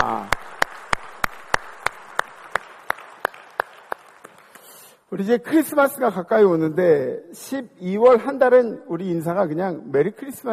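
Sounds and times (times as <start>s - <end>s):
audience clapping in unison: 0.0s - 5.0s
speech: 5.1s - 10.5s.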